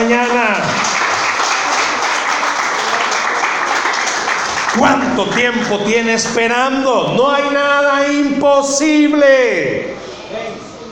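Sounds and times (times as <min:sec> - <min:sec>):
audience applauding: 0:00.6 - 0:05.9
speech: 0:04.8 - 0:10.6.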